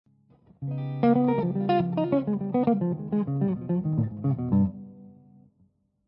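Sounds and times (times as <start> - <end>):
lydian dominant melodic lines: 0.8 - 5.0.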